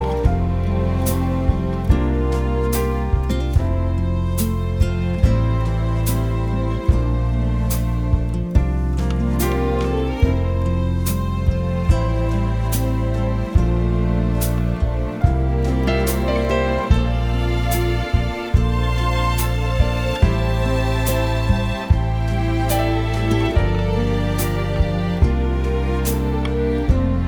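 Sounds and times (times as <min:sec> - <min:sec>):
instrumental music: 0:00.0 - 0:27.2.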